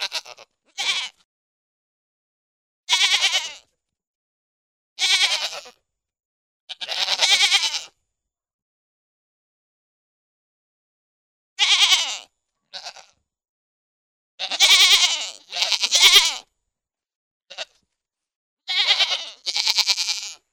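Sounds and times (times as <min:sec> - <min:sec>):
pygmy goat bleating: 0:00.0 - 0:01.3, 0:02.9 - 0:03.7, 0:05.0 - 0:05.8, 0:06.7 - 0:08.0, 0:11.6 - 0:13.2, 0:14.4 - 0:16.5, 0:17.5 - 0:17.8, 0:18.7 - 0:20.5.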